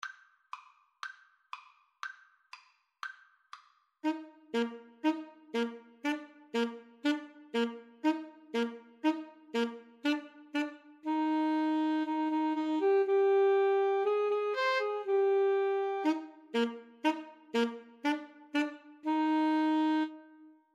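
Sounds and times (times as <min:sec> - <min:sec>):
alto saxophone: 0:04.0 - 0:20.7.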